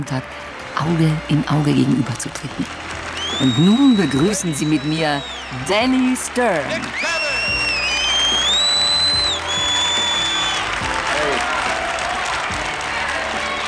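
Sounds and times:
speech: 0.0 - 7.1
boxing crowd cheering and applauding in a radio drama: 0.0 - 13.6
shrill whistles: 3.0 - 6.0, 6.7 - 11.8.

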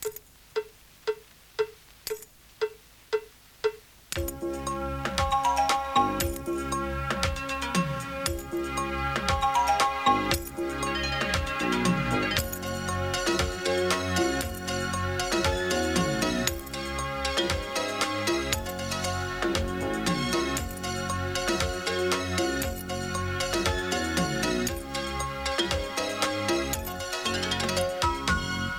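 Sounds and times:
keyring struck with a pencil in a steady pattern: 0.0 - 4.4
full band of music: 4.2 - 28.7.

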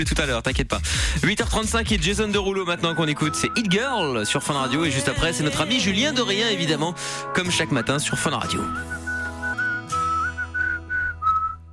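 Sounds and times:
speech: 0.0 - 9.0
person whistling: 8.6 - 11.7.

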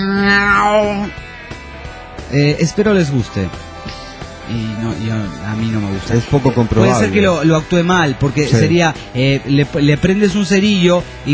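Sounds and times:
person imitating a cat meow: 0.0 - 1.2
speech: 2.3 - 3.7, 4.5 - 11.3.

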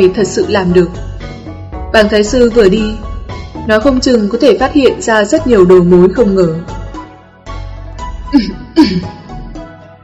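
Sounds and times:
speech: 0.0 - 1.1, 1.9 - 6.8, 8.3 - 9.2
man giving dry rasping coughs and throat clears: 8.4 - 9.3.

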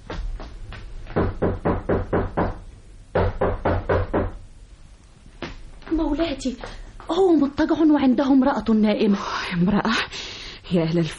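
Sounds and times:
knocking on a door: 1.1 - 4.4
speech: 6.2 - 11.1.

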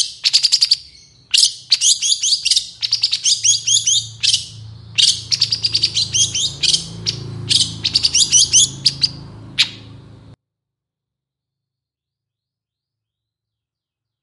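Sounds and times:
long-tailed shrike chirping song: 0.0 - 10.4
low hum: 2.8 - 10.4.

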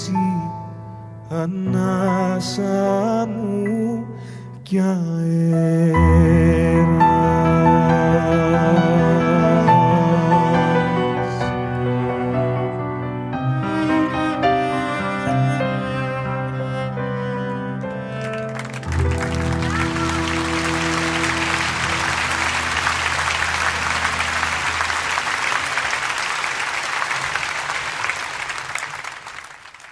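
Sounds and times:
sung melody with instruments: 0.0 - 27.3
speech: 1.3 - 7.4
loud sustained audience applause: 18.0 - 29.9.

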